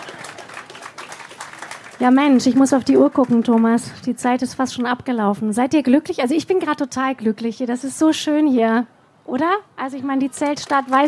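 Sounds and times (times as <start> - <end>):
audience clapping: 0.0 - 3.9, 10.2 - 11.0
speech: 2.0 - 11.0.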